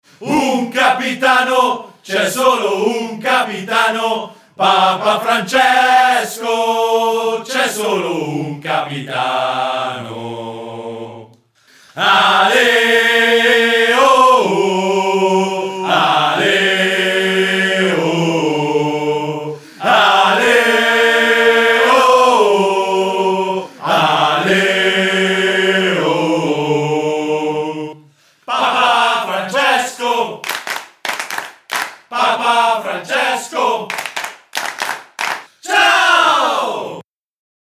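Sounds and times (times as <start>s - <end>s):
choir singing an official greeting: 0.2s - 37.0s.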